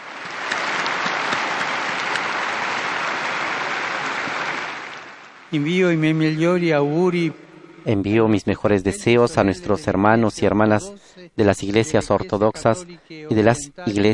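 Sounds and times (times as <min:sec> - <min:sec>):
crowd applause: 0:00.0 - 0:05.6
speech: 0:05.5 - 0:14.1.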